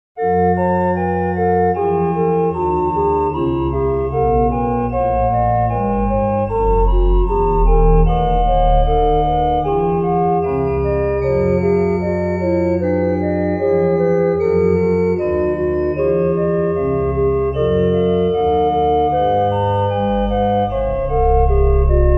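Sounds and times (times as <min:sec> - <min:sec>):
organ: 0:00.2 - 0:22.1.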